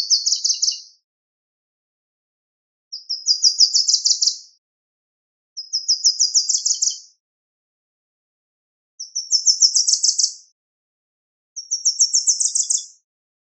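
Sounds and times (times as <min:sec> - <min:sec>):
small birds singing trilled phrases: 0:00.0 - 0:01.0, 0:02.9 - 0:04.6, 0:05.6 - 0:07.2, 0:09.0 - 0:10.5, 0:11.6 - 0:13.0.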